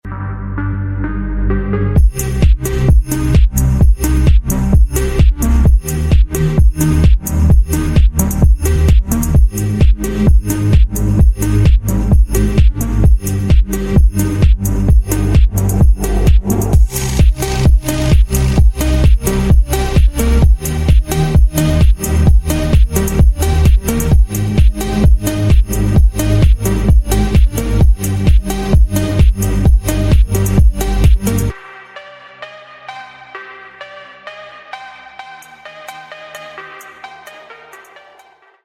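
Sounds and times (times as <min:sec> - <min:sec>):
phonk music: 0:00.0 - 0:38.6.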